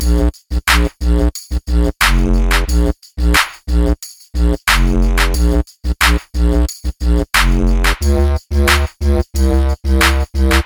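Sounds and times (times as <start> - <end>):
didgeridoo dance music: 0.0 - 10.6.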